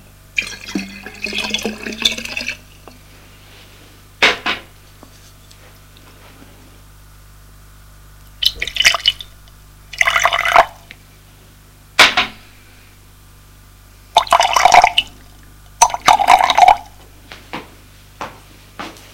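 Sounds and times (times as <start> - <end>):
drink being poured: 0.4 - 3.0, 8.4 - 9.3, 9.9 - 10.8, 14.2 - 16.9.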